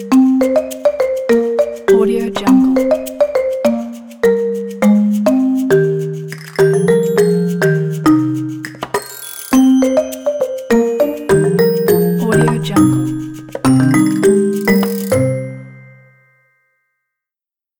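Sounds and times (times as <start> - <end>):
kids marimba background music: 0.0 - 16.4.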